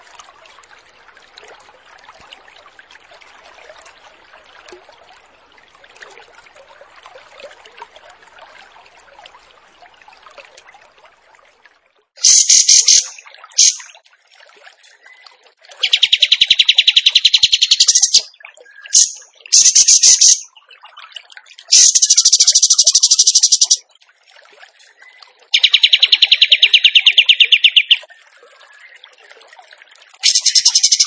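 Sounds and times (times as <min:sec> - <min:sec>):
bird singing rattling trills: 0:12.2 - 0:13.9, 0:15.8 - 0:18.3, 0:18.9 - 0:20.5, 0:21.7 - 0:23.8, 0:25.5 - 0:28.0, 0:30.2 - 0:31.0.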